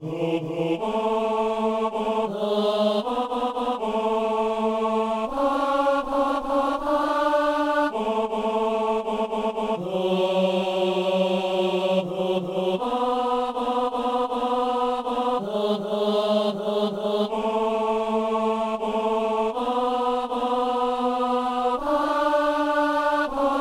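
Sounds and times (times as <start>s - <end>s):
tenor singing: 0.0s - 23.6s.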